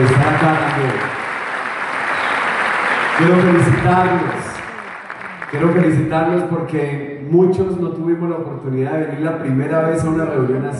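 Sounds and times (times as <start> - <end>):
crowd clapping: 0.0 - 6.6
speech: 3.2 - 4.5, 5.5 - 10.7.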